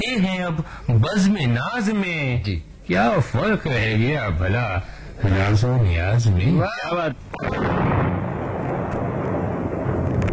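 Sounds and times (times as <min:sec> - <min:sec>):
speech: 0:00.1 - 0:08.0
rolling thunder from storm clouds: 0:07.4 - 0:10.3.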